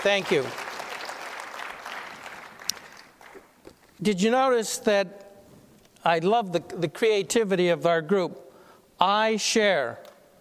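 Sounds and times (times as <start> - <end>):
speech: 0.0 - 0.6, 4.0 - 5.2, 6.0 - 8.4, 9.0 - 10.0
audience applause: 0.0 - 3.5.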